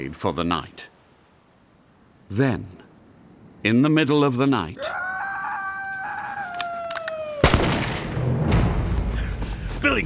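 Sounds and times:
speech: 0.0s - 0.9s, 2.3s - 2.8s, 3.6s - 5.0s
wavering, falling cry: 4.8s - 7.4s
gunshot at night: 7.4s - 9.0s.

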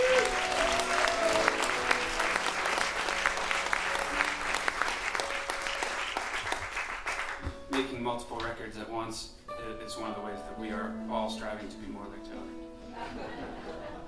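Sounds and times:
audience applause: 0.0s - 7.5s
speech: 9.1s - 14.0s
laughter: 12.8s - 14.0s.

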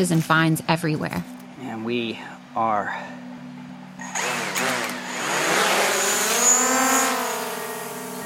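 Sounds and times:
speech: 0.0s - 3.2s
drone motors launching into flight: 4.0s - 8.2s.

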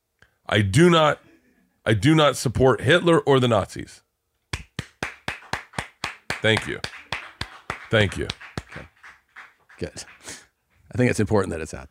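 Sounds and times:
speech: 0.5s - 1.2s, 1.8s - 4.0s, 6.4s - 6.9s, 7.9s - 8.9s, 9.8s - 11.8s
person clapping: 4.5s - 10.5s.

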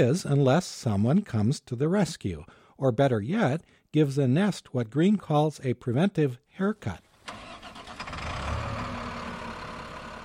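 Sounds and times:
speech: 0.0s - 7.4s
heavy bucket truck engine idling: 7.3s - 10.2s.

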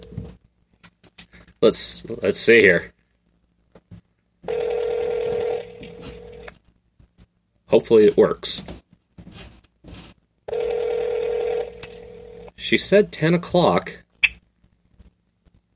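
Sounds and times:
speech: 1.6s - 3.0s, 7.7s - 8.8s, 12.7s - 14.0s
phone ringback tone: 4.5s - 6.5s, 10.5s - 12.5s.

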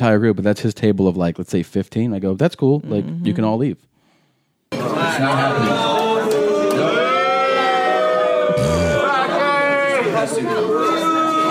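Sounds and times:
speech: 0.0s - 3.9s, 4.7s - 6.0s
audience booing: 4.8s - 11.4s.

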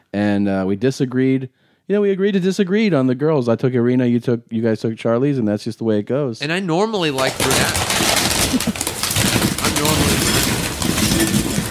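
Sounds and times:
speech: 0.2s - 8.8s
chips poured into a bowl as a radio show sound effect: 7.2s - 11.6s.

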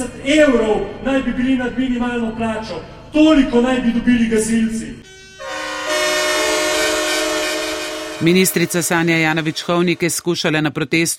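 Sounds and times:
speech: 0.2s - 5.5s, 8.2s - 11.1s
protesters' horns blaring: 5.0s - 10.3s.

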